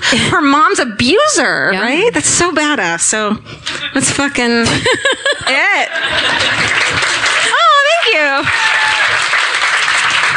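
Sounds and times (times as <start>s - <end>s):
speech: 0.1s - 7.2s, 8.1s - 9.3s
laughter: 3.6s - 9.1s
applause from a small group in a living room: 6.2s - 10.3s.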